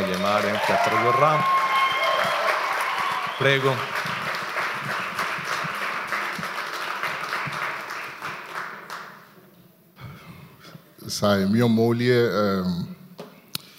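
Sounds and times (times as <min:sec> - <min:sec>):
audience applause: 0:00.0 - 0:09.2
speech: 0:00.2 - 0:01.6, 0:03.4 - 0:04.2, 0:11.2 - 0:13.0.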